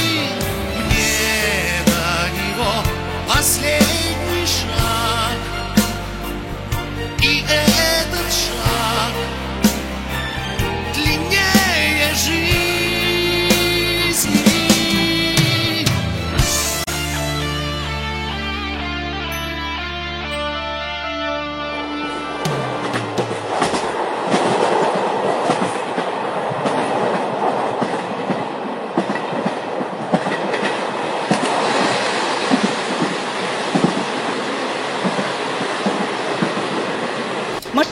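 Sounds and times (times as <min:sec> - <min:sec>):
runaway diesel locomotive moving on the rails: 0:00.0 - 0:17.6, 0:22.0 - 0:37.9
sustained tones: 0:17.8 - 0:24.0.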